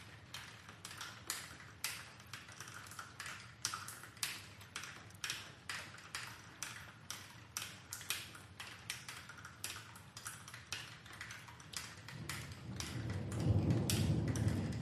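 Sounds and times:
rain dripping: 0.0s - 14.7s
distant thunder rumble: 12.2s - 14.7s.

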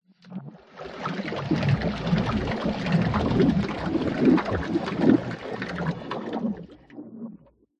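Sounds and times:
water movement in tank pipe: 0.1s - 7.6s.

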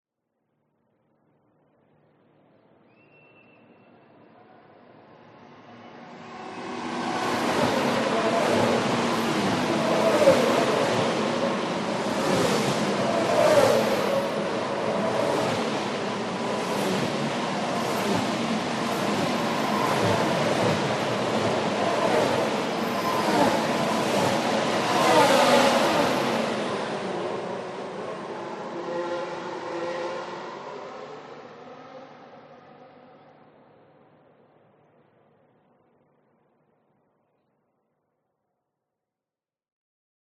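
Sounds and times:
F1 race car passing at speed on race track: 6.0s - 33.5s.

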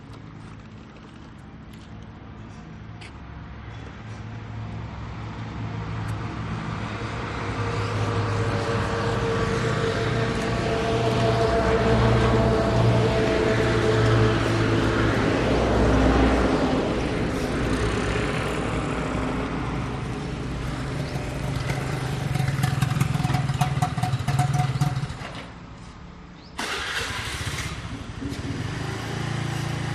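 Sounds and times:
trucks passing at gas station: 0.0s - 29.9s
motorcycle driving away: 7.4s - 25.5s, 26.6s - 29.9s.

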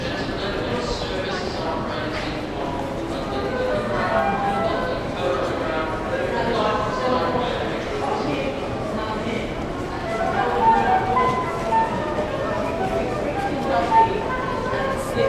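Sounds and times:
busy pedestrian tunnel ambience in the London Underground: 0.0s - 15.2s
London Underground announcement: 3.0s - 6.2s, 9.9s - 15.2s
busker playing flute: 3.2s - 5.9s, 9.9s - 15.2s.

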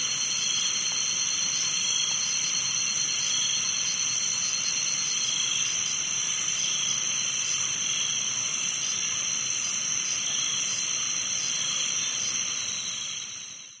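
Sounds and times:
wetland frogs in Doi Suthep National Park Thailand: 0.0s - 13.7s
wetland insects in Doi Suthep National Park Thailand: 0.0s - 13.7s.

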